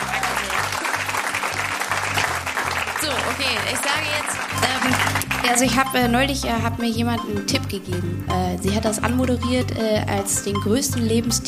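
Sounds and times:
crowd applauding: 0.0s - 6.1s
speech: 3.4s - 11.4s.

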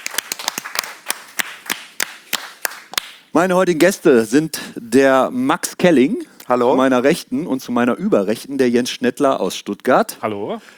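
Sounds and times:
audience applause at a tattoo convention: 0.0s - 3.1s
speech: 3.4s - 10.7s.

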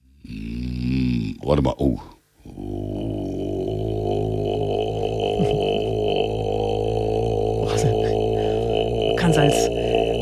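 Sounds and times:
man's extremely deep vocal drone: 0.0s - 1.5s, 2.4s - 10.2s
speech: 1.4s - 2.1s.

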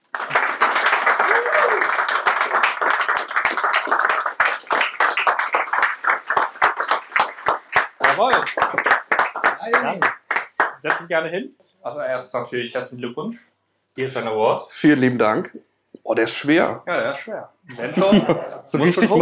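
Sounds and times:
audience applause: 0.0s - 11.0s
voices cheering: 1.0s - 3.0s
speech: 10.8s - 19.2s
laughter: 17.7s - 19.2s.

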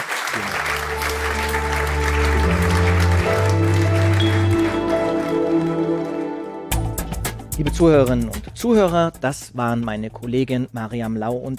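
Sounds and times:
audience applause: 0.0s - 6.8s
speech: 7.6s - 11.5s.

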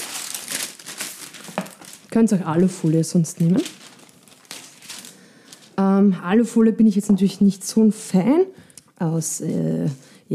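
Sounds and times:
sandwich paper crinkling and rustling: 0.0s - 5.8s
speech: 2.1s - 3.8s, 6.0s - 10.3s.

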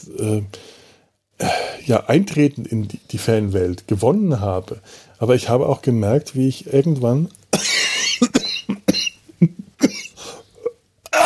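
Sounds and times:
speech: 0.0s - 0.7s, 1.9s - 7.7s
breath: 0.5s - 1.8s, 4.8s - 5.2s, 10.2s - 10.5s
harsh coughing from someone who has choked: 7.5s - 11.2s.

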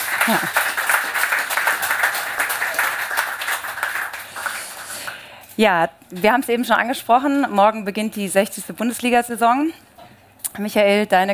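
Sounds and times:
audience applause: 0.0s - 5.2s
speech: 0.3s - 0.7s, 5.6s - 9.9s, 10.6s - 11.3s.

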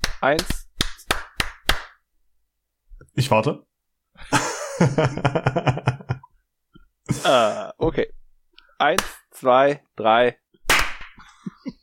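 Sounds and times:
hand clap: 0.0s - 2.0s, 9.0s - 9.3s, 10.6s - 11.3s
speech: 0.2s - 0.6s, 3.2s - 6.0s, 7.1s - 8.2s, 8.8s - 10.4s.

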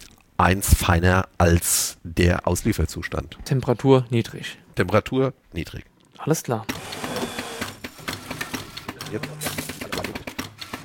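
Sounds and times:
speech: 0.4s - 6.9s, 9.1s - 9.4s
espresso machine pump pulsing brewing a 35 ml shot: 6.7s - 7.9s.

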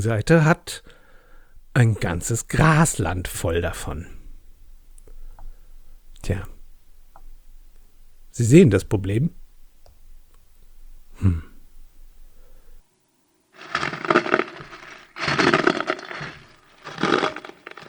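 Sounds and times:
speech: 0.0s - 1.0s, 1.8s - 4.2s, 6.2s - 6.5s, 8.4s - 9.4s, 11.2s - 11.5s
wooden crack: 13.6s - 17.8s.

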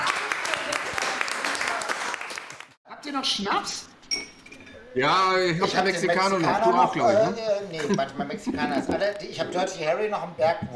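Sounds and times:
applause from a small group: 0.0s - 2.8s
speech: 3.1s - 3.9s, 5.0s - 10.7s.

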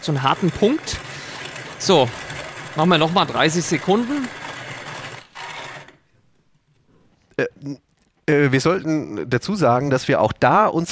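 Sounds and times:
speech: 0.0s - 1.1s, 1.8s - 2.2s, 2.8s - 4.4s, 7.4s - 10.9s
coffee beans being ground in grinder: 0.0s - 6.1s.

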